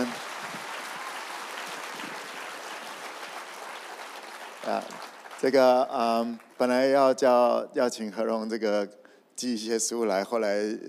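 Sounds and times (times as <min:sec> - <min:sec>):
applause: 0:00.0 - 0:07.0
speech: 0:04.7 - 0:10.8.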